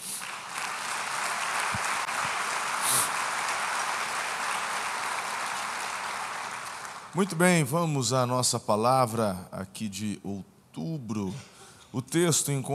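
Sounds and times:
audience applause: 0.0s - 7.2s
speech: 7.1s - 12.7s.

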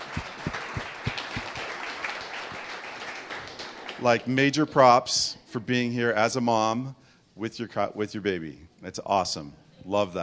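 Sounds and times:
audience applause welcoming a mother and her baby: 0.0s - 4.3s
speech: 4.0s - 10.2s.

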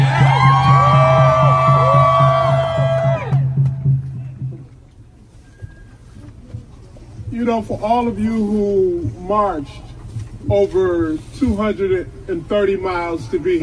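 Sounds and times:
civil rights rally audience cheering and whooping: 0.0s - 3.5s
speech: 7.4s - 9.9s, 10.5s - 13.6s.

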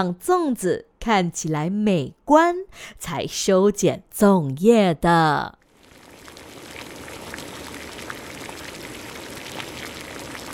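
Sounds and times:
speech: 0.0s - 5.6s
water boiling in a big pot: 5.6s - 10.5s.

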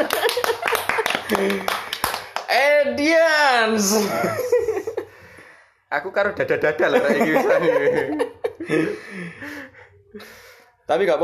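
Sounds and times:
laughter: 0.0s - 2.0s, 3.9s - 5.2s, 6.7s - 9.8s
hand clapping: 0.0s - 2.6s
speech: 1.3s - 1.8s, 2.8s - 4.7s, 5.9s - 9.6s, 10.2s - 11.2s.

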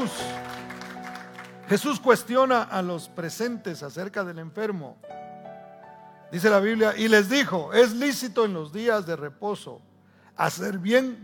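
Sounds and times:
speech: 0.0s - 0.3s, 1.7s - 5.2s, 6.3s - 11.2s
audience applauding: 0.0s - 2.3s.

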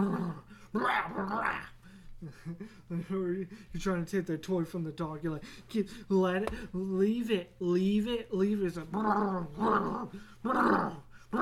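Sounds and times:
human voice imitating the Tasmanian Devil cartoon growl: 0.0s - 1.8s, 8.9s - 11.4s
speech: 0.0s - 11.4s.

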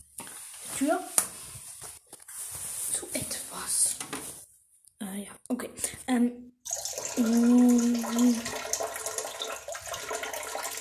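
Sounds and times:
speech: 6.1s - 6.4s, 7.2s - 8.6s
washing hands under running tap: 6.7s - 10.7s.

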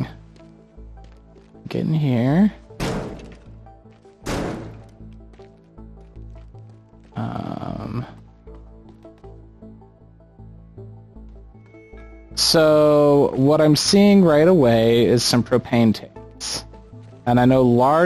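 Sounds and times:
low pulsing game soundtrack: 0.0s - 18.0s
speech: 1.7s - 2.6s, 12.5s - 16.6s, 17.3s - 18.0s
brick wall crumbling crash: 2.8s - 3.5s.

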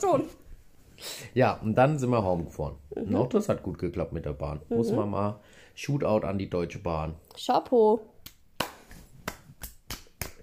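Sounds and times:
speech: 0.0s - 0.4s, 1.0s - 8.1s
hand clapping: 8.2s - 10.4s.

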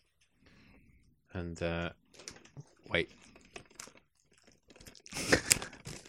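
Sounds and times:
speech: 1.4s - 3.3s
plastic wrap crinkling and tearing on a package of Blu-ray films: 2.1s - 6.0s.

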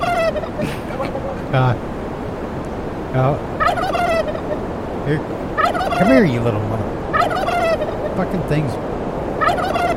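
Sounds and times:
turkeys gobbling: 0.0s - 1.4s, 3.6s - 4.7s, 5.5s - 6.4s, 7.1s - 8.4s, 9.4s - 9.9s
rushing wind: 0.0s - 9.9s
speech: 1.5s - 1.9s, 3.1s - 3.6s, 5.1s - 7.0s, 8.2s - 8.9s.

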